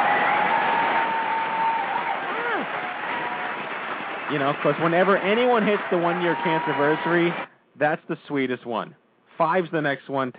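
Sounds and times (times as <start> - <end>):
applause: 0.0 - 7.5
speech: 4.3 - 10.3.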